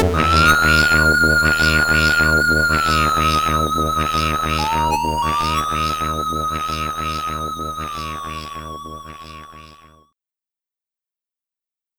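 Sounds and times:
SID chip music in stereo: 0.2 - 9.5.

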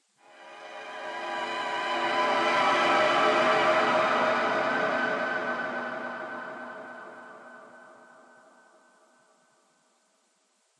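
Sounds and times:
combat string music: 0.2 - 8.7.

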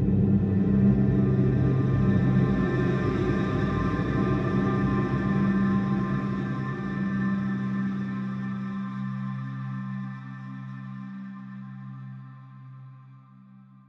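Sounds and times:
drone: 0.0 - 10.3.

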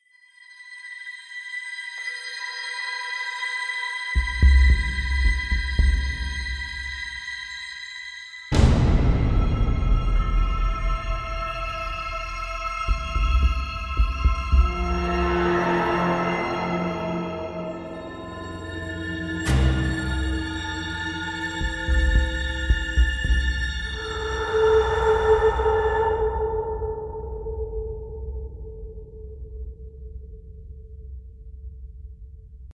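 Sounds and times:
field background music: 2.4 - 27.6.

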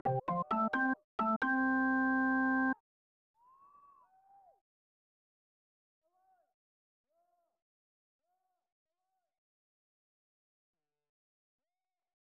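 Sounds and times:
organ music: 0.0 - 2.8.

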